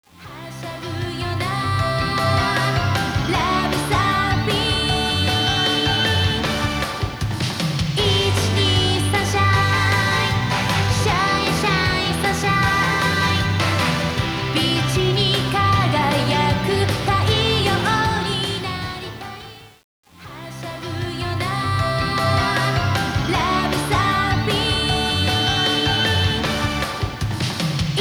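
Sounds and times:
karaoke backing music: 0:00.3 - 0:19.7, 0:20.3 - 0:27.9.

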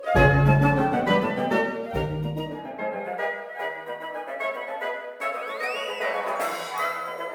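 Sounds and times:
potion shrink effect: 0:00.0 - 0:03.2, 0:05.5 - 0:07.2.

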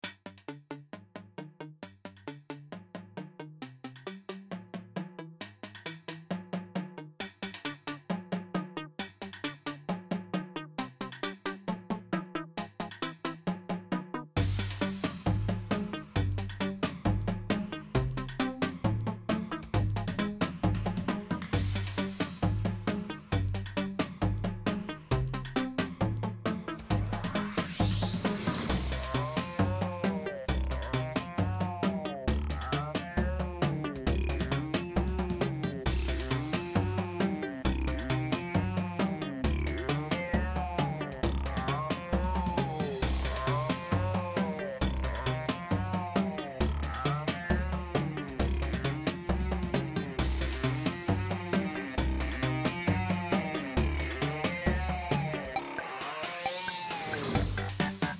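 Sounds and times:
in-game music: 0:00.1 - 0:58.1.

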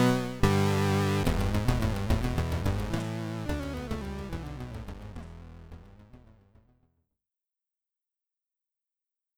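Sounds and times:
SID chip music in stereo: 0:00.0 - 0:06.5.

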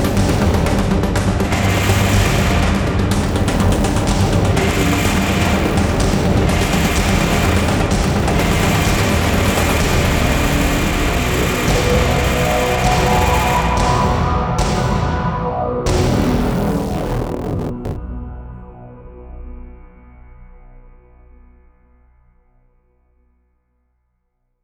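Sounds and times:
harsh industrial train crash: 0:00.0 - 0:18.0.

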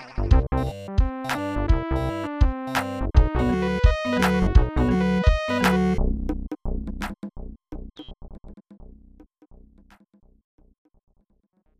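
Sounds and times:
level game music: 0:00.3 - 0:06.2.

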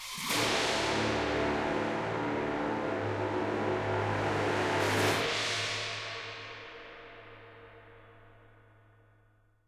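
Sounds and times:
escape music stinger: 0:00.2 - 0:06.6.

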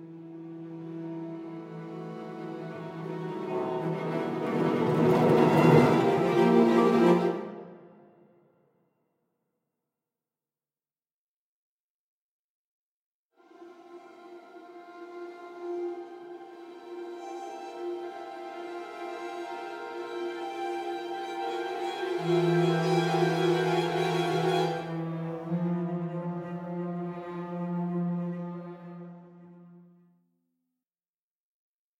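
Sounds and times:
background music: 0:00.0 - 0:08.4, 0:13.4 - 0:30.0.

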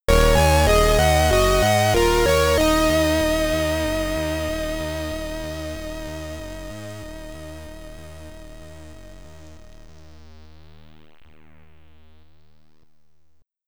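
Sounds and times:
Commodore 64 SID stereo game over music: 0:00.1 - 0:08.8.

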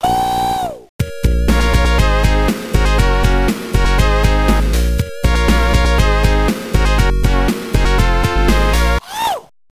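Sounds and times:
dance music with vocals: 0:01.2 - 0:09.0.

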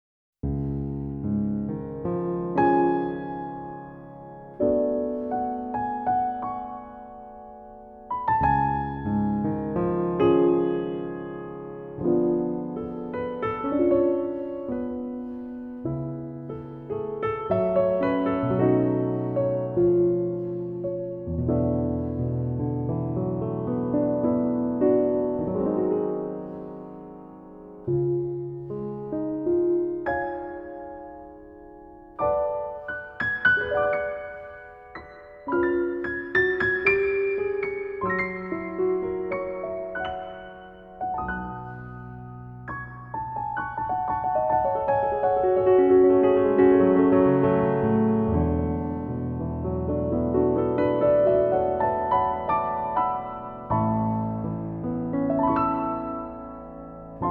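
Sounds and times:
transparent piano: 0:00.4 - 0:57.2.

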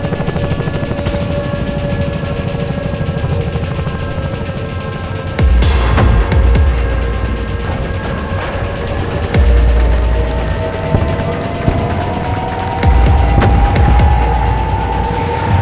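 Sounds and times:
resort loading music: 0:00.2 - 0:15.5.

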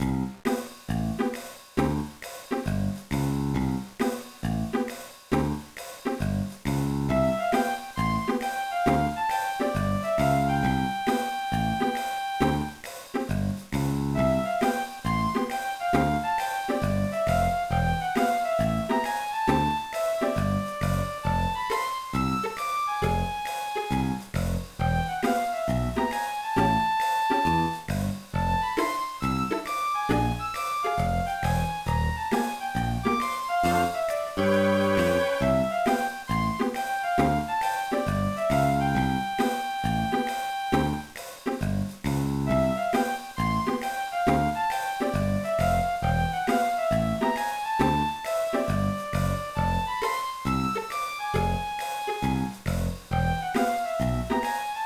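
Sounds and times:
background music: 0:00.0 - 0:54.8.

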